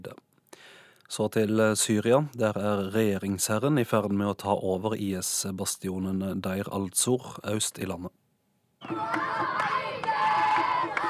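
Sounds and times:
speech: 1.1s - 8.2s
crowd of children cheering and shouting: 8.8s - 11.0s.

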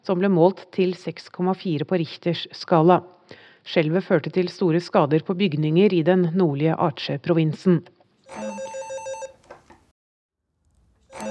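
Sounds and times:
speech: 0.0s - 8.8s
landline telephone ringing in a small office: 8.3s - 9.4s, 11.0s - 11.2s.

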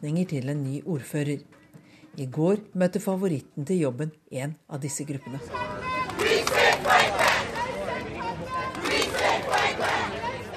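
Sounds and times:
speech: 0.0s - 1.6s, 2.2s - 7.3s
demonstrators chanting a slogan in unison: 5.3s - 10.5s.

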